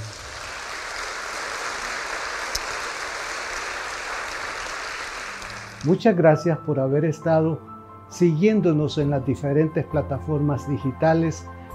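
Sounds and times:
audience applause: 0:00.0 - 0:06.0
speech: 0:05.8 - 0:11.6.

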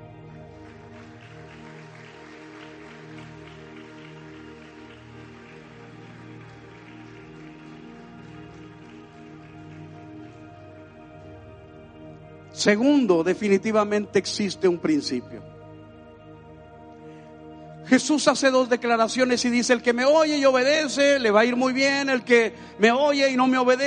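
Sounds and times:
audience applause: 0:00.4 - 0:11.4
speech: 0:12.6 - 0:15.5, 0:17.9 - 0:23.8.

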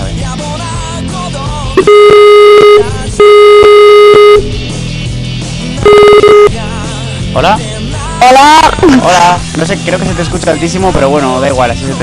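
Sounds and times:
outgoing call ringback tone: 0:01.8 - 0:04.6, 0:05.8 - 0:06.6
speech: 0:07.4 - 0:12.0.

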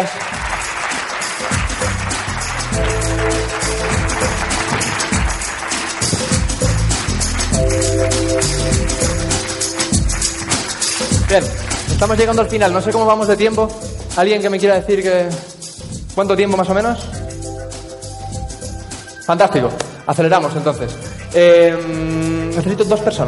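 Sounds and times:
speech: 0:00.0 - 0:00.3, 0:08.0 - 0:09.4, 0:11.3 - 0:15.5, 0:16.2 - 0:17.2, 0:19.3 - 0:23.2
audience applause: 0:00.0 - 0:12.1.

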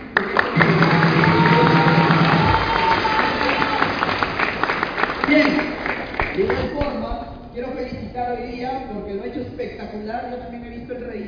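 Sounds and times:
audience applauding: 0:00.0 - 0:06.8
cheers and whoops: 0:00.6 - 0:04.2
speech: 0:09.9 - 0:11.2.

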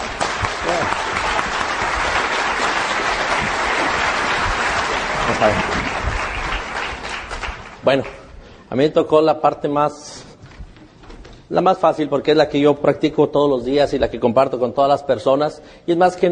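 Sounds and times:
audience applause: 0:00.0 - 0:08.2
speech: 0:05.4 - 0:05.8, 0:07.9 - 0:10.2, 0:11.5 - 0:16.3.

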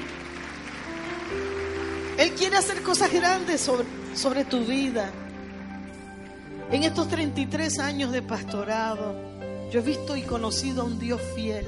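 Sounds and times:
audience applause: 0:00.0 - 0:06.6
speech: 0:02.2 - 0:05.2, 0:06.7 - 0:11.6.

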